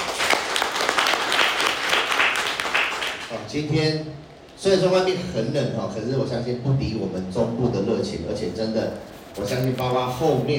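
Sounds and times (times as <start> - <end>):
audience applause: 0.0 - 3.3
speech: 3.5 - 10.5.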